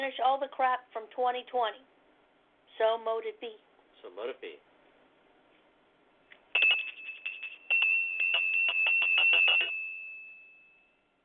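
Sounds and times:
speech: 0.0 - 2.0, 2.8 - 4.7
hand bell ringing: 6.6 - 11.0.

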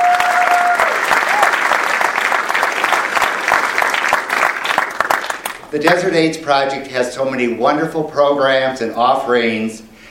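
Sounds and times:
crowd applause: 0.0 - 5.7
speech: 5.7 - 9.8.

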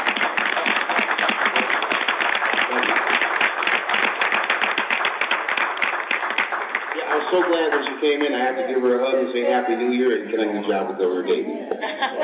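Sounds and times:
audience applause for Dr. Josie Johnson: 0.0 - 10.0
speech: 7.3 - 12.2
laughter: 11.5 - 12.2.

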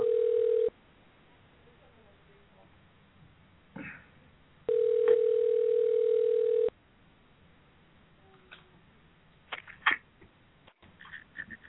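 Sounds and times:
telephone ringback tone: 0.0 - 0.7, 4.7 - 6.7.

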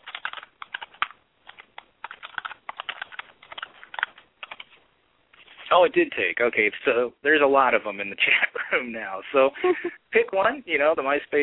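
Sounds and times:
fingers typing on a computer keyboard: 0.0 - 4.8
speech: 5.7 - 11.4.

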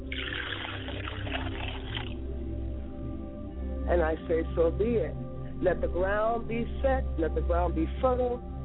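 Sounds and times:
libation liquid poured onto the ground: 0.1 - 2.1
speech: 3.9 - 8.5.

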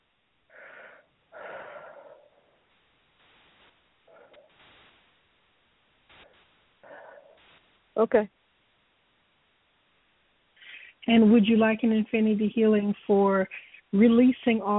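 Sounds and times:
deep breaths during a guided infinity healing session: 0.5 - 5.0, 6.1 - 7.6, 10.6 - 11.0
speech: 8.0 - 8.4, 11.1 - 14.7.

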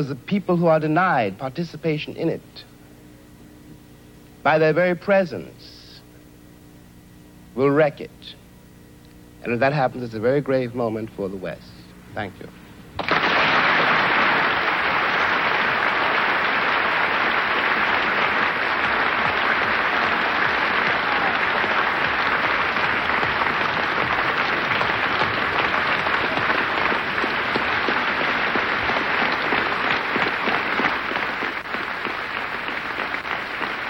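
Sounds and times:
speech: 0.0 - 2.7, 4.4 - 5.8, 7.6 - 8.4, 9.4 - 12.6
audience standing ovation applause: 13.0 - 33.8.

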